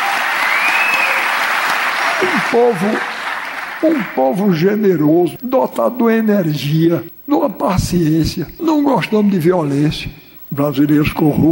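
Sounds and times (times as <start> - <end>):
audience applause: 0.0 - 4.3
speech: 2.2 - 3.1, 3.8 - 11.5.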